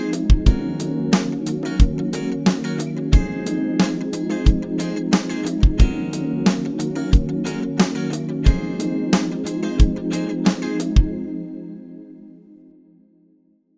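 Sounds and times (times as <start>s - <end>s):
fretless bass groove: 0.2s - 11.2s.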